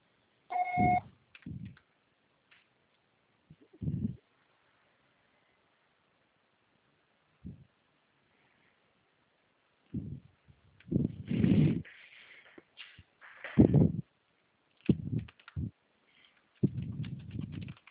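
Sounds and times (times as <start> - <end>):
voicemail signal tone: 0.5 - 1.0
dull low thumps: 3.5 - 4.2, 10.0 - 11.8, 13.6 - 14.1, 14.9 - 15.8.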